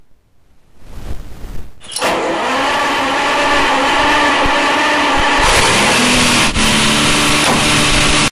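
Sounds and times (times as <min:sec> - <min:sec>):
old starter of a Ferrari 330 GT: 0:01.8 - 0:08.2.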